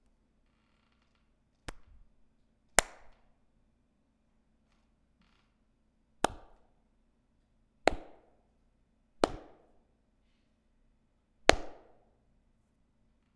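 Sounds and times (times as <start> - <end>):
hand clap: 1.7 - 2.0, 2.8 - 3.3, 6.2 - 6.7, 7.9 - 8.3, 9.2 - 9.8, 11.5 - 12.0.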